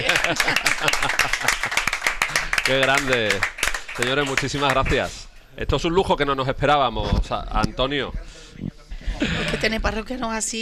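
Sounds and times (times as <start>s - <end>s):
laughter: 0.0s - 2.5s, 8.9s - 9.8s
audience clapping: 0.0s - 5.2s
speech: 0.3s - 2.0s, 2.6s - 10.6s.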